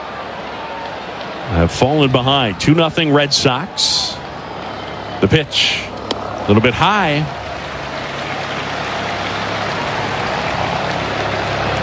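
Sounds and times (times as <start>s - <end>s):
speech: 1.5s - 4.2s, 5.2s - 7.4s
helicopter flying by overhead: 2.6s - 11.8s.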